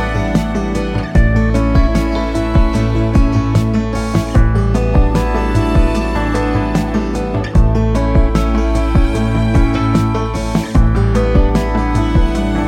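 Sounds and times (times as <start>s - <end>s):
peaceful yoga lounge music: 0.0s - 12.6s.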